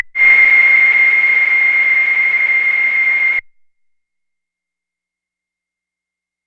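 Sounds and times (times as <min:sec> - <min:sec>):
noise: 0:00.2 - 0:03.4.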